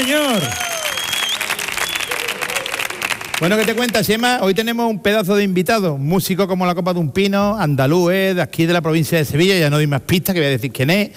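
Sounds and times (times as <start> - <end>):
speech: 0.0 - 0.7, 3.4 - 11.1
live show audience shouting: 0.0 - 3.4
live show audience clapping loudly: 0.0 - 4.3.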